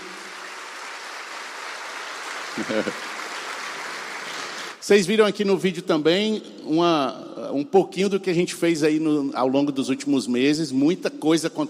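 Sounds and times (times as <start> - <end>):
audience applause: 0.0 - 4.8
speech: 2.6 - 3.1, 4.9 - 11.6
laughter: 2.6 - 3.2.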